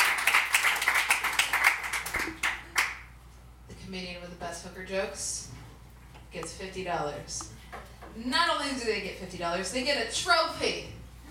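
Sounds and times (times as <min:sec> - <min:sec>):
audience clapping: 0:00.0 - 0:03.1
speech: 0:03.9 - 0:05.6, 0:06.3 - 0:07.6, 0:08.2 - 0:11.0.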